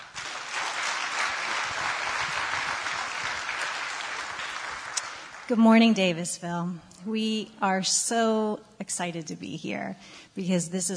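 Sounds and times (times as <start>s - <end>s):
church audience applauding guest speakers: 0.0s - 5.5s
speech: 5.5s - 10.9s.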